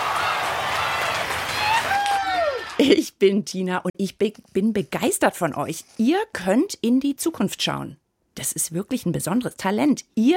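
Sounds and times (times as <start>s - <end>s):
audience applause after a performance: 0.0s - 2.8s
speech: 2.8s - 10.3s.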